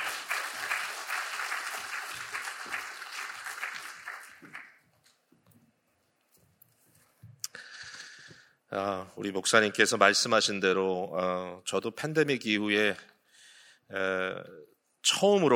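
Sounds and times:
applause: 0.0s - 4.9s
speech: 8.7s - 13.1s, 13.9s - 15.5s.

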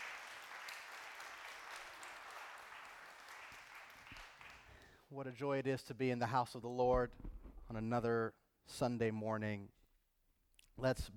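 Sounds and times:
audience clapping hands: 0.0s - 5.0s
speech: 5.1s - 9.8s, 10.8s - 11.1s.

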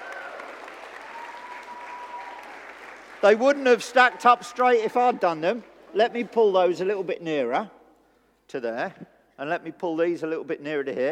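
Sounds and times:
group applauding: 0.0s - 6.6s
speech: 3.2s - 7.8s, 8.5s - 11.1s.

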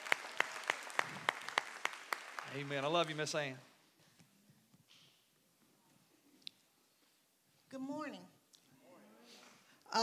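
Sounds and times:
audience applause: 0.0s - 3.6s
speech: 2.5s - 3.7s.

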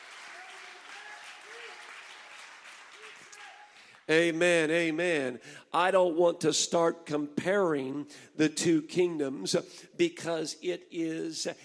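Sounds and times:
audience clapping hands: 0.0s - 4.4s
speech: 4.1s - 11.6s.

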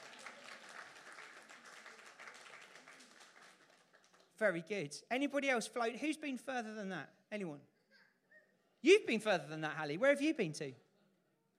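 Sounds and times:
audience applause: 0.0s - 4.4s
speech: 4.4s - 7.7s, 8.8s - 10.8s.

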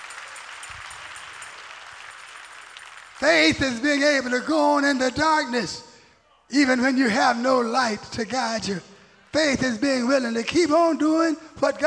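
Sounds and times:
audience clapping hands: 0.0s - 3.9s
speech: 3.2s - 5.9s, 6.5s - 11.8s.

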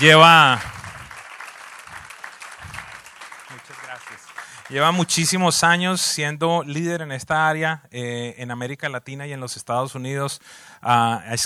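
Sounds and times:
speech: 0.0s - 0.7s, 4.7s - 11.4s
church audience applause: 0.0s - 5.4s.

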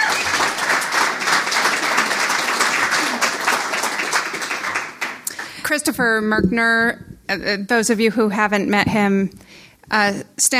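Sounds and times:
audience clapping: 0.0s - 5.9s
speech: 5.7s - 10.5s.

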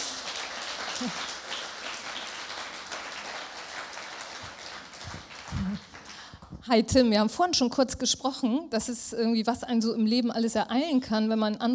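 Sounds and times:
applause: 0.0s - 6.6s
speech: 1.0s - 1.3s, 6.7s - 11.7s.

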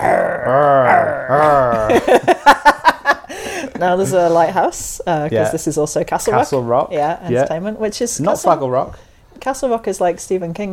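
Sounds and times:
lion roaring in film studio logo: 0.0s - 1.9s
laughter: 1.3s - 4.6s
speech: 3.8s - 10.7s.

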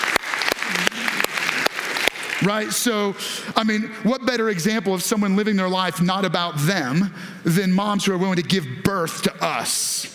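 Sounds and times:
crowd applauding: 0.0s - 3.0s
faint cheering voice: 0.6s - 1.5s
speech: 2.4s - 10.1s.

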